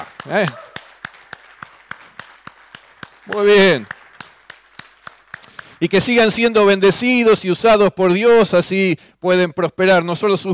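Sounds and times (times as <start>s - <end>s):
church congregation clapping in unison: 0.0s - 7.2s
speech: 0.2s - 0.6s, 3.3s - 4.0s, 5.8s - 10.5s.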